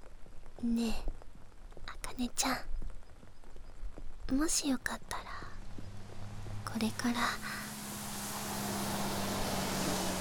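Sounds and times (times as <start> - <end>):
speech: 0.6 - 1.2, 2.2 - 2.7, 4.3 - 5.3, 6.7 - 7.6
bus pulling away from a stop: 5.6 - 10.1.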